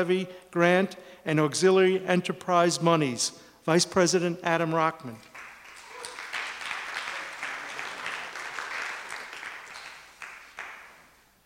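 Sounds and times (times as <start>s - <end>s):
speech: 0.0s - 5.3s
audience applause: 5.3s - 11.2s.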